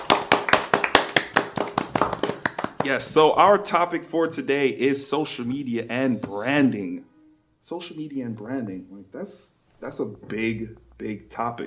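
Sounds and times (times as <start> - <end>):
hand clapping: 0.0 - 3.4
speech: 2.8 - 11.6.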